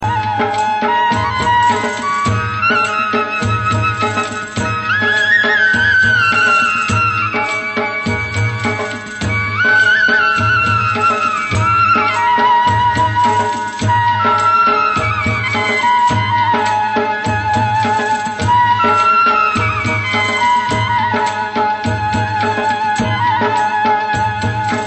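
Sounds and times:
flute tone: 0.0 - 24.8.

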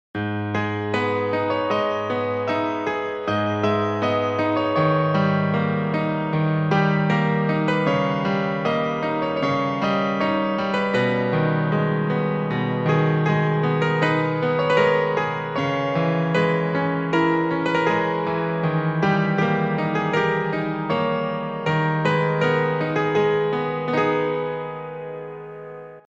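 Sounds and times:
very sad piano music: 0.2 - 26.1.

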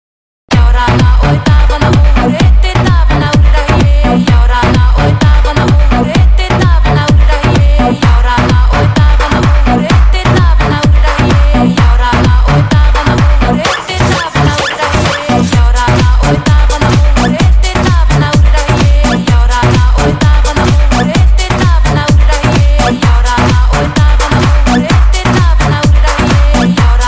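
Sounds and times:
drum: 0.5 - 27.0.

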